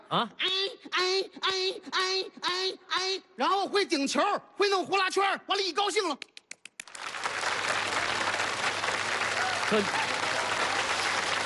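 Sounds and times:
speech: 0.1s - 6.3s, 9.7s - 10.1s
audience applause at a comic dialogue performance: 6.8s - 11.4s.

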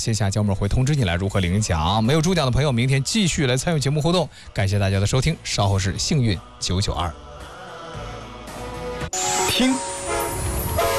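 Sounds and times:
speech: 0.0s - 7.3s, 9.6s - 9.9s
China-Europe freight train departing, horn: 9.2s - 10.9s.

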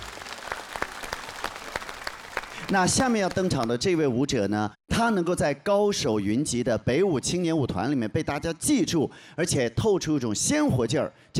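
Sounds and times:
audience applause after a dance performance on stage: 0.0s - 3.7s
speech: 2.7s - 11.3s.

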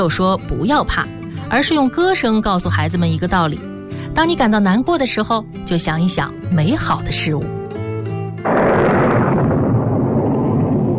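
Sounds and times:
speech: 0.0s - 7.6s
thunder: 8.4s - 10.9s.

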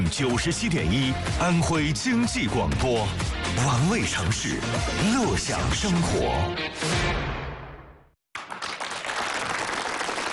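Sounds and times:
speech: 0.1s - 7.4s
enthusiastic audience applause: 8.3s - 10.3s.

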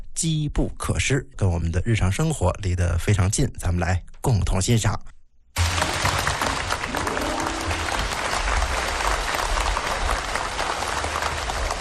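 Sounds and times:
speech: 0.2s - 5.1s
audience applause: 5.6s - 11.8s.

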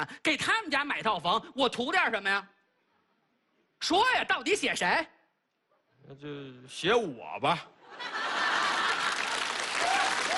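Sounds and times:
speech: 0.0s - 2.6s, 3.8s - 5.2s, 6.0s - 8.3s
laughter: 7.8s - 10.3s
audience applause: 8.4s - 10.3s.

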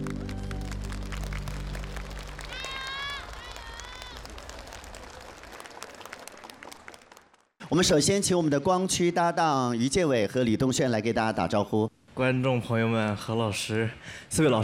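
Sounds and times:
audience applause: 0.0s - 7.6s
speech: 7.7s - 14.6s.

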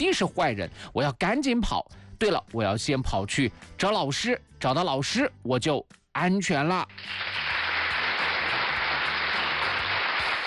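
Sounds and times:
speech: 0.0s - 7.6s
crowd applauding: 6.9s - 10.4s.

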